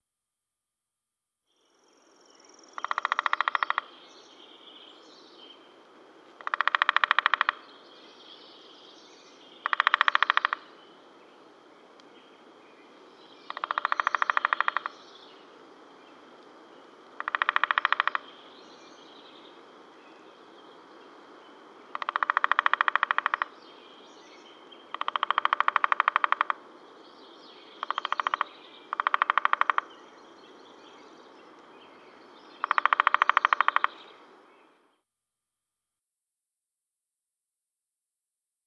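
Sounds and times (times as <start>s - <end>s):
background hiss: 1.5s - 35.0s
woodpecker chirping: 2.5s - 4.0s, 6.4s - 7.8s, 9.3s - 10.8s, 13.4s - 15.1s, 17.2s - 18.7s, 21.9s - 23.8s, 24.4s - 26.7s, 27.6s - 31.6s, 32.6s - 34.2s.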